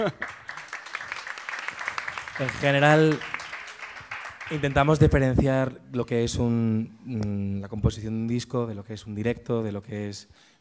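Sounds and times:
speech: 0:00.0 - 0:00.4, 0:02.4 - 0:03.3, 0:04.5 - 0:10.5
applause: 0:00.0 - 0:05.4.

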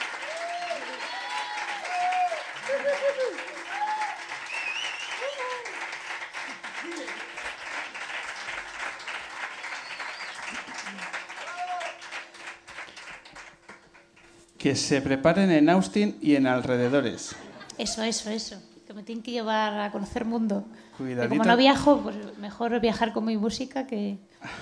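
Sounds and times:
audience applause for backing singers: 0:00.0 - 0:14.4
laughter: 0:02.5 - 0:03.7, 0:16.8 - 0:18.0
speech: 0:02.8 - 0:03.6, 0:14.6 - 0:24.6.

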